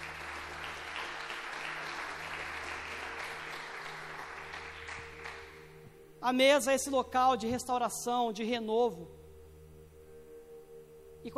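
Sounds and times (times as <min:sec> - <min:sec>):
audience applause: 0:00.0 - 0:05.6
speech: 0:06.2 - 0:09.2.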